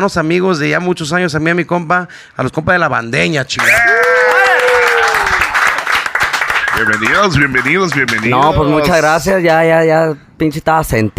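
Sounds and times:
speech: 0:00.0 - 0:04.1, 0:06.8 - 0:11.1
audience applause: 0:03.6 - 0:08.8.

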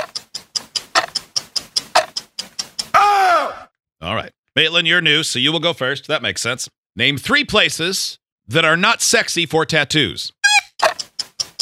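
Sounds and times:
ticking game timer: 0:00.0 - 0:03.0, 0:10.4 - 0:11.5
speech: 0:04.6 - 0:10.4.

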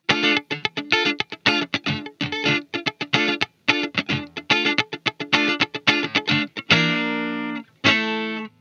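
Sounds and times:
electric guitar chucking rhythm on three strings: 0:00.0 - 0:08.6.

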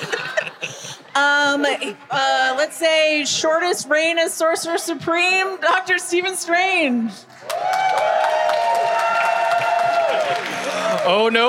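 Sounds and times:
laughter: 0:00.0 - 0:01.3
speech: 0:01.2 - 0:07.3, 0:11.0 - 0:11.4
live audience cheering: 0:07.4 - 0:11.4.

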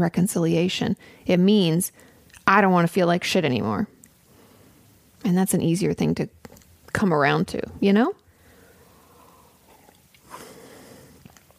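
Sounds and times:
speech: 0:00.0 - 0:04.0, 0:05.2 - 0:08.2
heavy breathing into a microphone: 0:08.3 - 0:11.2
soft sniffing: 0:08.5 - 0:11.4.

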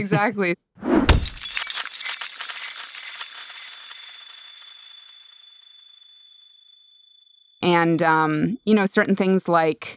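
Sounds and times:
speech: 0:00.0 - 0:00.6, 0:07.6 - 0:09.9
glass bottle breaking over a head: 0:01.1 - 0:07.2.

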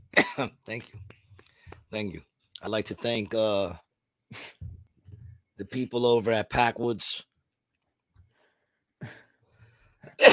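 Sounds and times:
hard cough after a bong hit: 0:00.2 - 0:00.6, 0:10.1 - 0:10.3
speech: 0:00.4 - 0:01.1, 0:01.9 - 0:04.6, 0:05.6 - 0:07.3, 0:10.0 - 0:10.3.

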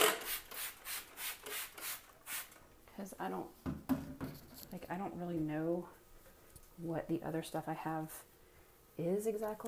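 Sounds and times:
antibacterial spray pumped into a sink: 0:00.2 - 0:02.5
speech: 0:03.2 - 0:03.6, 0:04.8 - 0:06.0, 0:06.8 - 0:08.3, 0:08.9 - 0:09.6.

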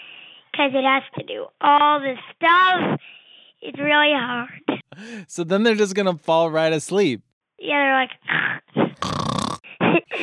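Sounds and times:
speech: 0:00.6 - 0:09.3
imitated snoring: 0:08.9 - 0:09.7.

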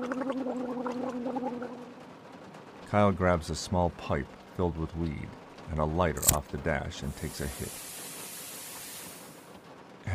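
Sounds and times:
gargling water: 0:00.0 - 0:02.0
speech: 0:02.9 - 0:07.8.

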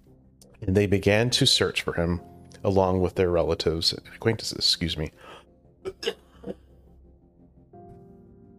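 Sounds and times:
speech: 0:00.6 - 0:06.2
dry coughs: 0:05.8 - 0:06.6.

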